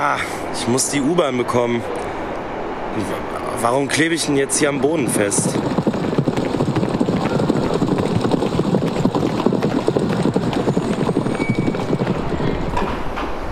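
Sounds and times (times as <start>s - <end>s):
speech: 0.0s - 2.2s, 2.9s - 5.8s
horse hooves clip-clopping in a riding hall: 4.8s - 13.4s.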